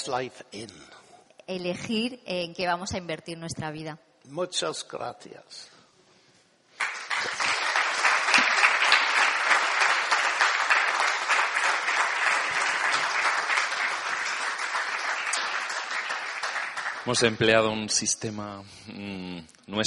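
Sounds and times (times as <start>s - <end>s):
speech: 0.0s - 5.8s, 17.0s - 19.8s
audience applause: 6.8s - 18.1s.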